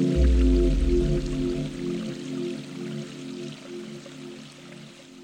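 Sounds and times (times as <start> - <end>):
gong bath: 0.1 - 2.3.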